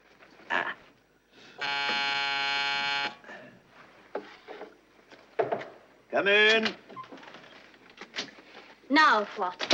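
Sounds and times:
call buzzer ringing: 1.6s - 3.2s
speech: 6.2s - 6.8s, 8.9s - 9.7s.

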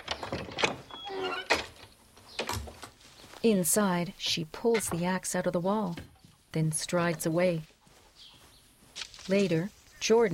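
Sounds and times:
large slatted wooden barn door knocking and scraping open: 0.0s - 2.8s
barn door creaking squeal: 0.8s - 1.7s
speech: 3.4s - 7.7s, 9.3s - 10.3s.

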